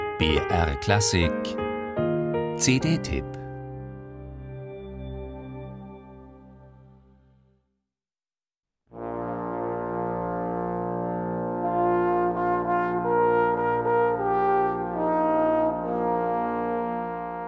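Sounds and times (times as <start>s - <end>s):
speech: 0.2s - 1.6s, 2.6s - 3.4s
layered solo trombones playing an intro: 8.9s - 17.4s.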